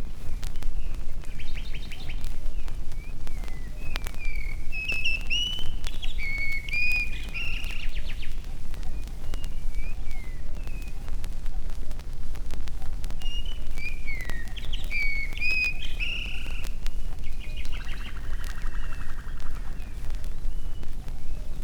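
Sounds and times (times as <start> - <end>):
bird voices in nature: 0.1 - 11.8, 12.7 - 21.6.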